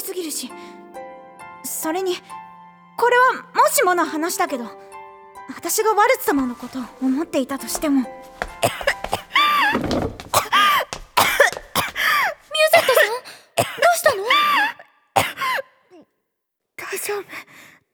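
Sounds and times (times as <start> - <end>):
speech: 0.2 - 1.0, 1.8 - 4.9, 5.5 - 8.9
person in a coughing fit: 8.6 - 9.2, 10.3 - 12.2, 12.8 - 15.6.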